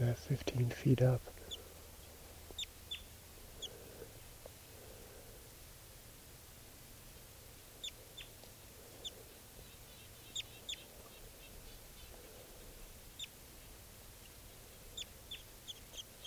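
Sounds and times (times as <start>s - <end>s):
speech: 0.0s - 1.4s
steady low hum: 0.0s - 16.2s
wild bird chirping: 1.3s - 5.4s, 7.6s - 16.2s.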